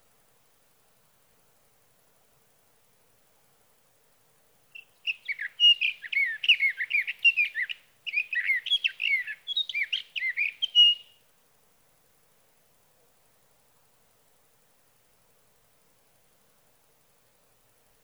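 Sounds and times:
Sage thrasher singing through the night: 4.8 - 11.2.

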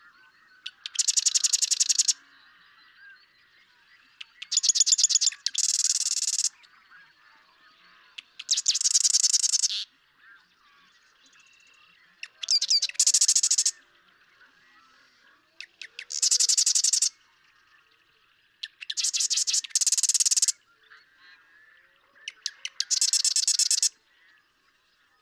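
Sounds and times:
soft chatter: 0.0 - 25.1
Marsh Wren rattling song: 0.7 - 2.2, 4.2 - 6.5, 8.2 - 9.8, 12.2 - 13.7, 15.7 - 17.1, 18.6 - 20.5, 22.3 - 23.9.

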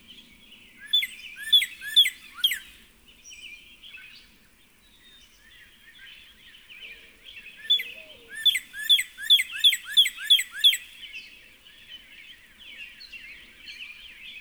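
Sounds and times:
Northern cardinal song of rapidly repeated down-slurred whistled notes: 0.8 - 2.8, 7.4 - 11.0.

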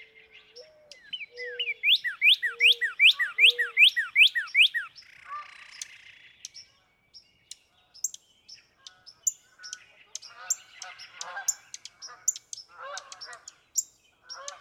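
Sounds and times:
Northern cardinal down-slurred whistled song: 0.6 - 5.0.

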